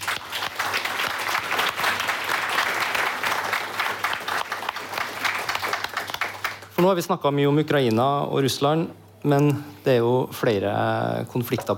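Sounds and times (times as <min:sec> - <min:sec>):
audience applause: 0:00.0 - 0:06.7
speech: 0:06.8 - 0:11.7.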